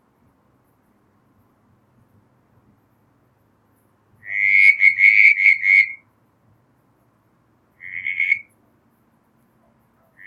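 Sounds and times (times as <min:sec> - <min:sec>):
Southern brown tree frog Litoria ewingii pulsed creaking call: 0:04.2 - 0:06.0, 0:07.8 - 0:08.5.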